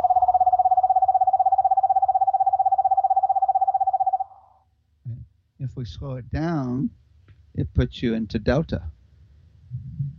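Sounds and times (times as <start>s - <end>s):
screech owl giving a long steady trill: 0.0s - 4.6s
speech: 5.8s - 7.0s, 7.6s - 8.9s.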